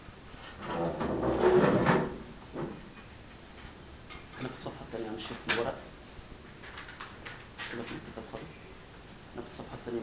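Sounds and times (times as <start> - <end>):
chair being pulled closer across the floor: 0.4 - 2.8
speech: 4.6 - 5.9, 7.7 - 8.8, 9.4 - 10.0.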